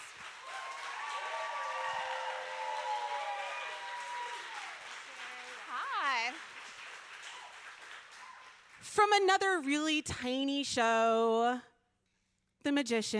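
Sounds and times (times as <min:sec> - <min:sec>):
audience clapping: 0:00.0 - 0:09.5
speech: 0:09.0 - 0:11.7, 0:12.6 - 0:13.1.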